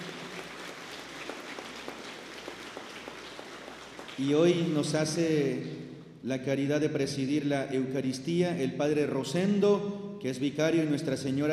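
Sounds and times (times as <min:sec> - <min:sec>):
audience applause: 0:00.0 - 0:04.8
speech: 0:04.2 - 0:11.5.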